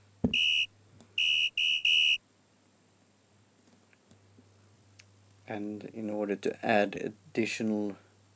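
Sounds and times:
high-pitched fire alarm: 0.3s - 2.2s
speech: 5.5s - 8.0s.

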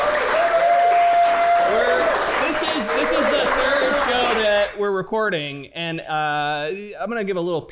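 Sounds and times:
live audience applause: 0.0s - 4.8s
speech: 5.0s - 7.7s.

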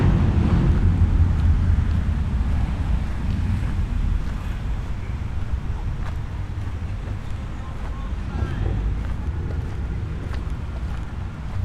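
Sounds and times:
low rumble of traffic or wind in Bath: 0.0s - 11.6s
faint voices: 4.2s - 11.6s.

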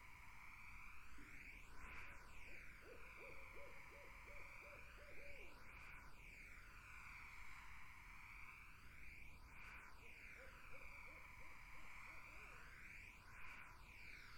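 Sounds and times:
insect drone: 0.0s - 14.3s
barred owl hooting: 2.6s - 5.6s, 10.4s - 11.8s.

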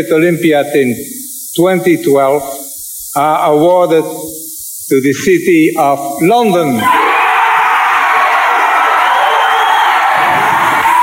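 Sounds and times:
speech: 0.0s - 2.6s, 3.2s - 7.0s
crowd cheering in a ballroom: 6.8s - 11.0s.

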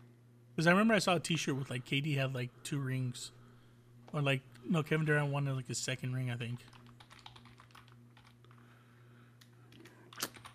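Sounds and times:
steady low hum: 0.0s - 10.5s
speech: 0.6s - 3.4s, 4.1s - 6.8s
typing on a computer keyboard: 6.7s - 8.6s, 10.1s - 10.5s.

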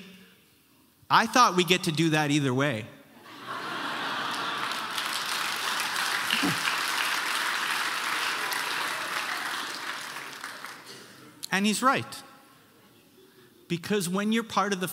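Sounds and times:
speech: 1.1s - 3.0s, 11.6s - 12.3s, 13.7s - 14.9s
laughter: 3.2s - 5.4s, 6.0s - 6.9s
audience clapping: 4.0s - 11.4s.

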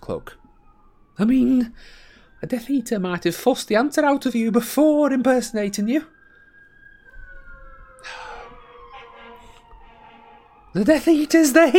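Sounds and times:
sirens wailing outside: 0.0s - 11.7s
speech: 0.1s - 0.4s, 1.2s - 6.2s, 8.0s - 8.3s, 10.8s - 11.7s
breathy burst: 8.0s - 9.6s.

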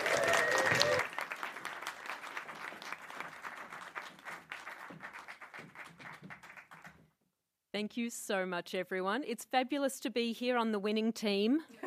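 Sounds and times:
audience applause for a speaker at a Science Week event: 0.0s - 7.1s
speech: 7.8s - 11.8s.

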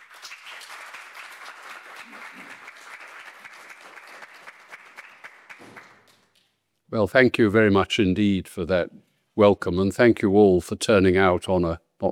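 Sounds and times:
audience applause at a legal-profession gathering: 0.0s - 6.2s
speech: 6.9s - 12.1s.

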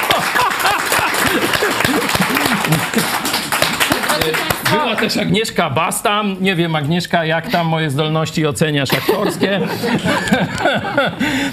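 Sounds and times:
laughter: 0.0s - 4.3s, 8.9s - 11.5s
audience applause: 0.0s - 5.2s
speech: 4.3s - 11.5s.

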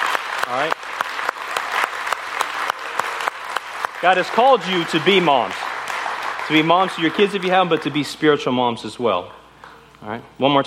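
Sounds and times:
round of applause: 0.0s - 8.4s
speech: 0.5s - 0.9s, 4.0s - 5.6s, 6.5s - 9.4s, 10.0s - 10.6s.

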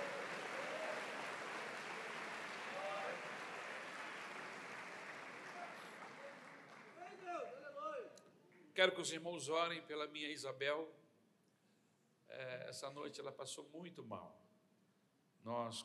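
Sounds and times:
audience applause: 0.0s - 7.4s
speech: 8.8s - 11.0s, 12.4s - 14.4s, 15.4s - 15.8s.

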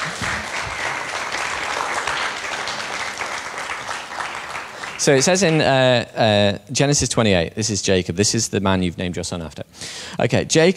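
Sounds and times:
crowd applauding: 0.0s - 5.8s
speech: 5.0s - 10.7s.

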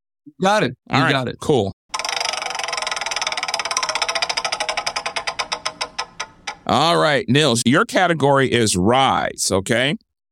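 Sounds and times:
speech: 0.2s - 1.8s, 6.7s - 10.0s
prize wheel spinning: 1.9s - 6.9s.

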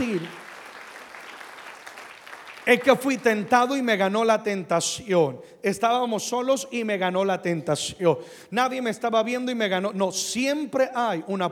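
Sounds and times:
audience applauding: 0.0s - 3.8s
speech: 0.1s - 0.4s, 2.6s - 11.4s.

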